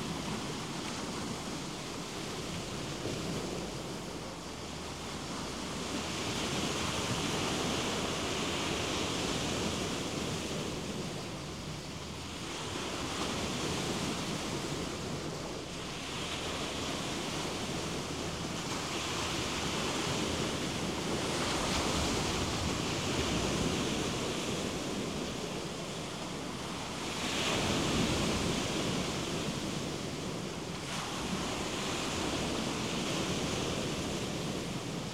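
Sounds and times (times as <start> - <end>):
cicada: 0.0 - 35.1.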